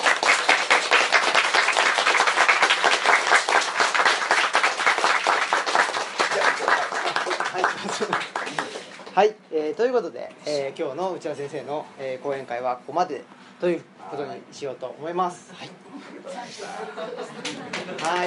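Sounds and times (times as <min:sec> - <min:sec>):
audience applause: 0:00.0 - 0:09.1, 0:17.3 - 0:18.2
laughter: 0:06.2 - 0:08.8, 0:15.6 - 0:18.2
speech: 0:09.2 - 0:15.8, 0:16.5 - 0:18.2.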